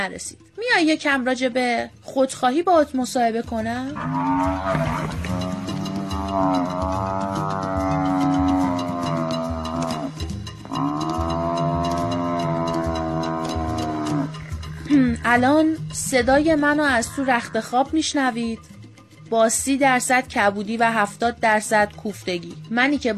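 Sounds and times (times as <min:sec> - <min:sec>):
speech: 0:00.0 - 0:05.4, 0:06.4 - 0:07.7, 0:15.2 - 0:23.1
buffalo mooing: 0:03.9 - 0:15.6.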